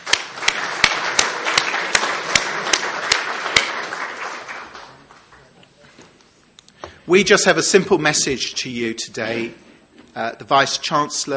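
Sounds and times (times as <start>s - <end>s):
audience round of applause: 0.0s - 5.5s
speech: 7.1s - 11.3s.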